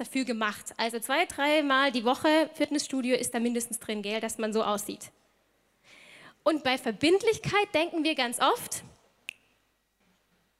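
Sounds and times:
speech: 0.0s - 5.2s, 6.4s - 8.9s
finger snap: 9.3s - 9.6s.

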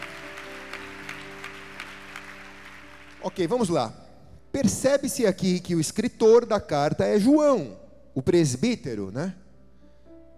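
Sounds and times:
audience applause: 0.0s - 3.7s
speech: 3.2s - 9.4s.

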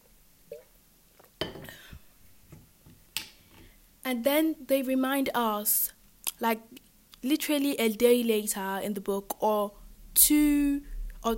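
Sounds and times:
glass clinking: 1.4s - 1.8s
speech: 4.1s - 11.3s.

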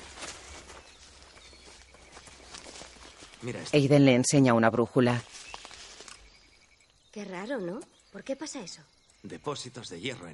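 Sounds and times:
woman's running footsteps through a forest: 0.0s - 3.8s
speech: 3.4s - 5.4s, 7.4s - 10.3s.

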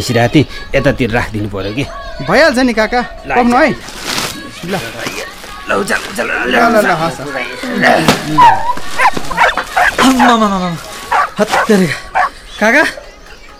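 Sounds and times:
speech: 0.0s - 9.2s, 10.0s - 13.0s
dog tied on a rope barking and whimpering: 8.3s - 10.5s, 11.1s - 12.4s.

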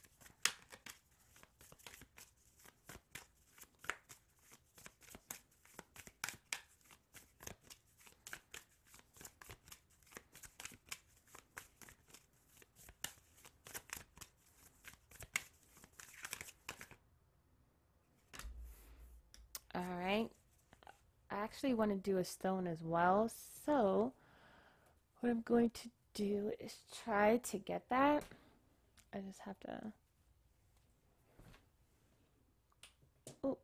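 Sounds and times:
rune cards being shuffled and drawn: 0.0s - 17.0s
speech: 19.8s - 20.4s, 21.4s - 24.2s, 25.2s - 28.4s, 29.2s - 30.0s.

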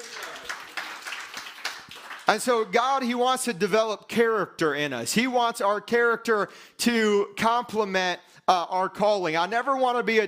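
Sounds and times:
audience hand clapping: 0.0s - 2.8s
speech: 2.3s - 10.2s.

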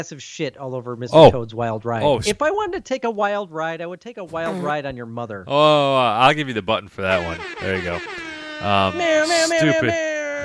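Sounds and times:
speech: 0.0s - 10.1s
laughter: 5.8s - 10.4s
human voice imitating a cat's meow: 7.2s - 10.4s.

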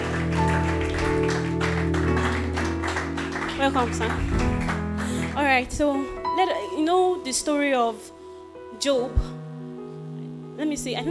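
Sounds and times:
church congregation applauding to welcome their pastor: 0.0s - 5.6s
speech: 3.6s - 4.4s, 5.5s - 8.2s, 8.8s - 9.3s, 10.6s - 11.0s.

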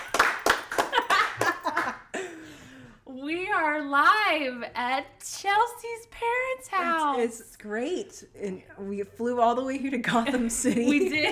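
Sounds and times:
people clapping: 0.0s - 2.0s
speech: 3.8s - 11.3s.

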